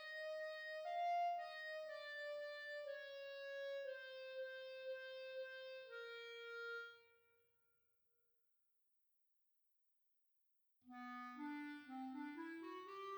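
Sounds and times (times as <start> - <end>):
clarinet playing classical music: 0.0 - 6.8, 11.0 - 13.1.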